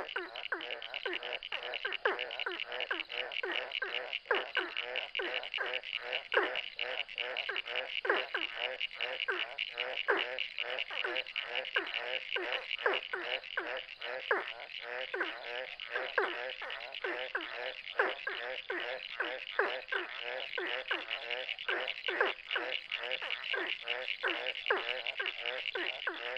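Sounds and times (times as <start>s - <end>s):
ornate burrowing frog: 0.0s - 26.3s.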